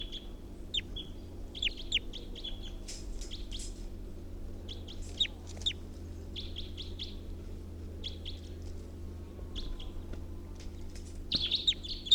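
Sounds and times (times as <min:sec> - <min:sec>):
bird alternate call with chirps and trills: 0:00.0 - 0:03.6, 0:04.6 - 0:07.2, 0:11.3 - 0:12.1
steady low hum: 0:00.0 - 0:12.1.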